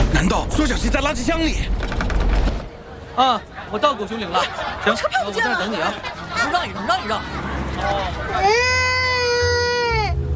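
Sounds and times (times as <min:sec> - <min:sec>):
speech: 0:00.2 - 0:02.0, 0:03.2 - 0:08.8
laughter: 0:02.9 - 0:10.0
baby crying: 0:08.3 - 0:10.2.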